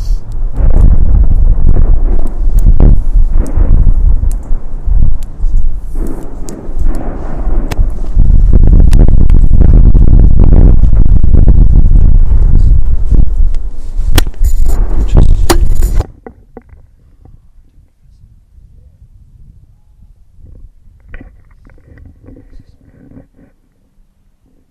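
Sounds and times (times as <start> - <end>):
fireworks: 0.0 - 16.2.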